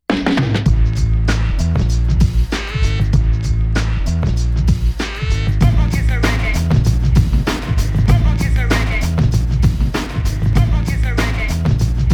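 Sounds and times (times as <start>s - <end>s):
hip hop beat at 97 BPM in C: 0.3s - 12.1s.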